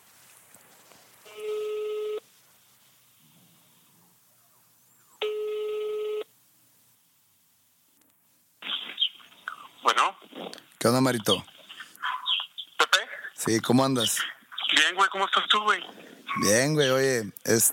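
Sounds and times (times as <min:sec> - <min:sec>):
hiss: 0:00.0 - 0:17.7
phone ringback tones over a speakerphone: 0:01.3 - 0:02.2, 0:05.2 - 0:06.3
speech: 0:10.8 - 0:11.6, 0:13.5 - 0:14.4, 0:15.0 - 0:17.7.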